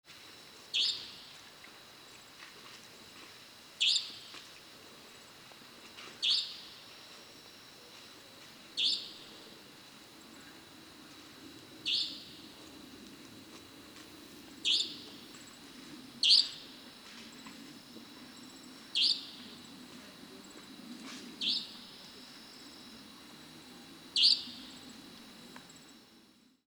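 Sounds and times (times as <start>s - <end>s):
quiet background hiss: 0.1s - 26.6s
European nightjar calling: 3.8s - 4.2s, 8.8s - 9.2s, 11.9s - 12.2s, 14.6s - 15.0s, 16.2s - 16.6s, 19.0s - 19.3s, 24.2s - 24.6s.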